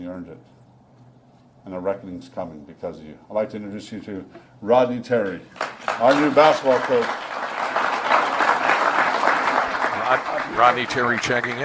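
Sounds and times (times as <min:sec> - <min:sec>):
speech: 0:00.0 - 0:00.6, 0:01.6 - 0:07.3, 0:10.1 - 0:11.6
large crowd applause: 0:05.6 - 0:11.6.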